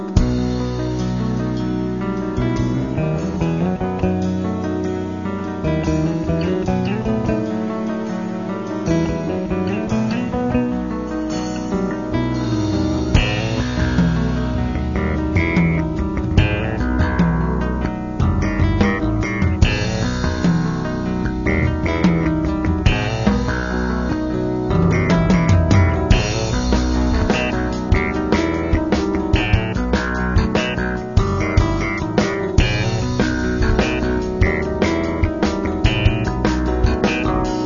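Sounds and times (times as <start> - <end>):
fusion orchestra music: 0.2 - 37.6.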